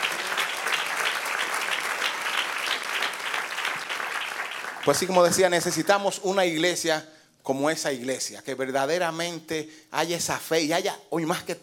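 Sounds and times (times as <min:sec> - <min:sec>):
audience applauding: 0:00.0 - 0:05.6
speech: 0:04.8 - 0:11.6.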